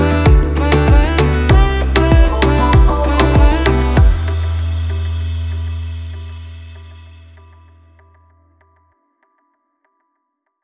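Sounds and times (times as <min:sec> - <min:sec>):
Spanish Latin reggaeton music: 0:00.0 - 0:06.4.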